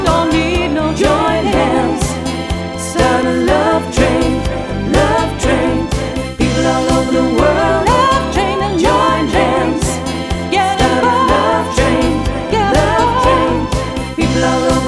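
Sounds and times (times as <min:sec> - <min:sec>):
disco band playing Motown, soul and 70s disco hits: 0:00.0 - 0:14.8.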